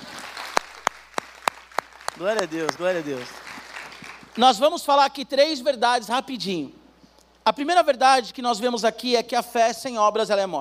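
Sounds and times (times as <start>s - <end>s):
audience applauding: 0.0s - 4.4s
speech: 2.2s - 3.4s, 4.4s - 6.8s, 7.4s - 10.5s.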